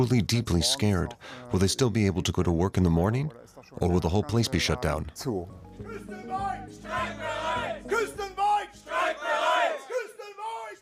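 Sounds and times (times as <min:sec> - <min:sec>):
speech: 0:00.0 - 0:07.2
large crowd of angry protesting car factory workers shouting and chanting: 0:05.8 - 0:10.8.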